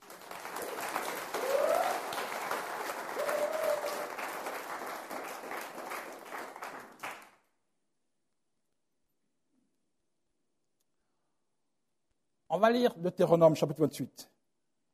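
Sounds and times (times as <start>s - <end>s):
church congregation clapping: 0.0s - 7.5s
speech: 12.6s - 14.4s.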